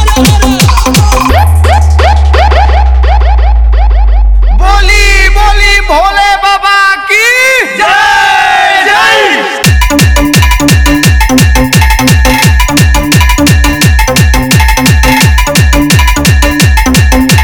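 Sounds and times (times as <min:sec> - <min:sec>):
nonstop DJ competition song: 0:00.0 - 0:17.4
siren horn: 0:01.3 - 0:05.9.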